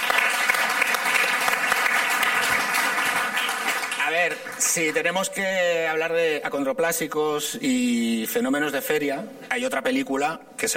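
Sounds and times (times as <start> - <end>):
crowd applause: 0.0 - 4.8
speech: 4.2 - 10.7.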